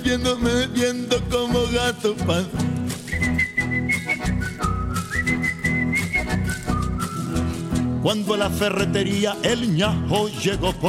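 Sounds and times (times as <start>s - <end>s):
speech: 0.1s - 2.9s, 8.0s - 10.8s
person whistling a tune: 3.0s - 7.8s.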